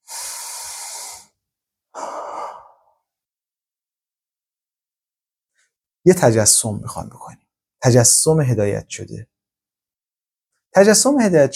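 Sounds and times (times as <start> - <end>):
deep breath during a guided relaxation exercise: 0.0 - 3.1
speech: 6.0 - 9.4, 10.7 - 11.5.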